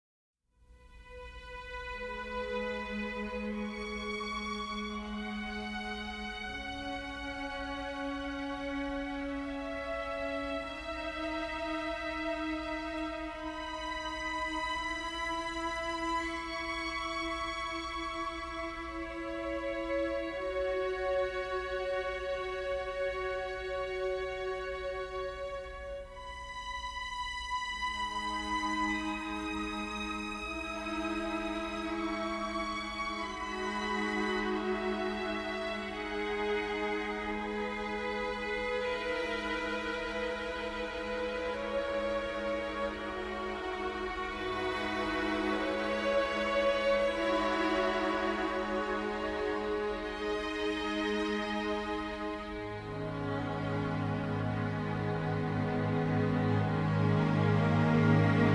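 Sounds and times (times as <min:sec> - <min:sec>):
string ensemble: 0:00.6 - 0:58.5
harp: 0:00.9 - 0:58.5.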